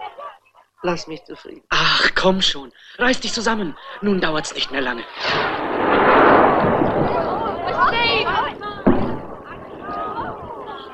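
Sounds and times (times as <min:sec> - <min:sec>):
voices talking and calling: 0:00.0 - 0:10.9
speech: 0:00.8 - 0:06.2
distress rockets fired from a ship: 0:05.0 - 0:10.9
sharp bang of distress rocket: 0:05.2 - 0:10.1.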